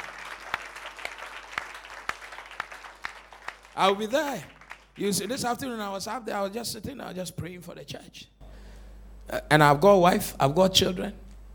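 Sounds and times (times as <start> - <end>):
audience clapping: 0.0 - 5.7
speech: 3.8 - 8.4, 9.3 - 11.2.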